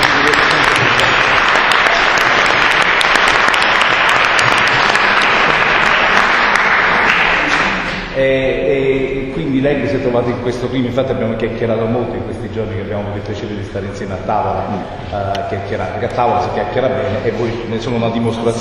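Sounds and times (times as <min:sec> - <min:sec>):
audience applause: 0:00.0 - 0:08.1
speech: 0:08.2 - 0:08.5, 0:09.4 - 0:18.5.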